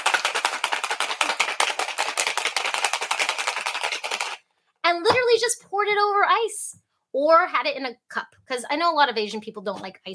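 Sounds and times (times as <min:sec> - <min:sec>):
drink shaken in martini shaker: 0:00.0 - 0:04.4
speech: 0:04.9 - 0:10.1.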